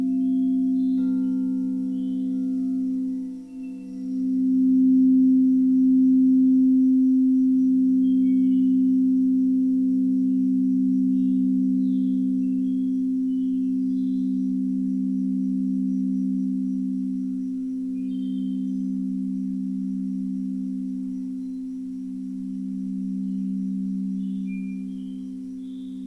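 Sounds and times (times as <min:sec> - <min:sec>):
singing bowls humming in a low drone: 0:00.0 - 0:26.0.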